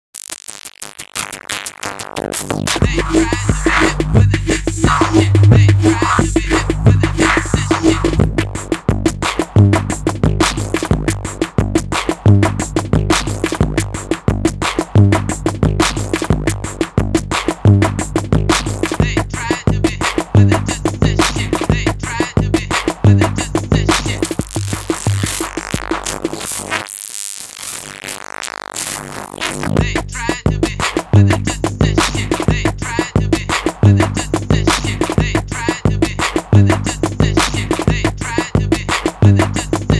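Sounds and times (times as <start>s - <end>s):
raw hip-hop music: 0.5s - 26.9s, 27.6s - 39.9s.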